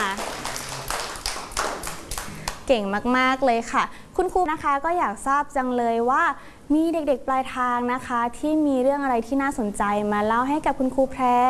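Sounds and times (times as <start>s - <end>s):
handclaps for a child: 0.0s - 2.7s
speech: 2.7s - 11.4s.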